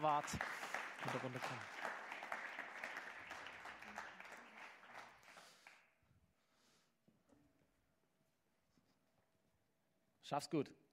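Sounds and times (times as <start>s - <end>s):
speech: 0.0s - 1.9s, 10.3s - 10.8s
audience applause: 0.0s - 5.9s.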